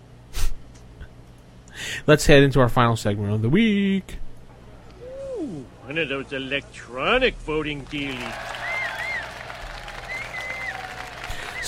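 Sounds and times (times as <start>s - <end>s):
speech: 2.0s - 4.2s, 5.9s - 8.5s
applause sound effect: 7.7s - 11.6s.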